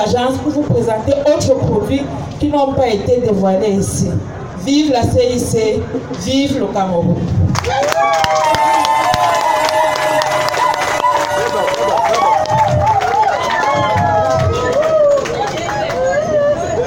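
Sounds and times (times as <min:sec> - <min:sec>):
speech: 0:00.0 - 0:08.8
crowd cheering and applauding: 0:07.5 - 0:16.8.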